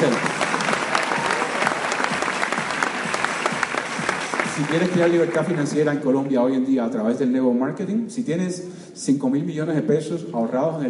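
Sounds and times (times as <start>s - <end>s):
audience applause: 0.0s - 6.0s
speech: 4.6s - 10.8s.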